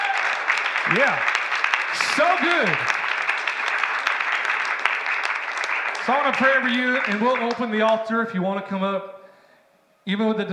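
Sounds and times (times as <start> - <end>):
congregation clapping hands during a church service: 0.0 - 8.2
speech: 0.9 - 1.3, 1.9 - 3.0, 6.1 - 9.2, 10.0 - 10.5.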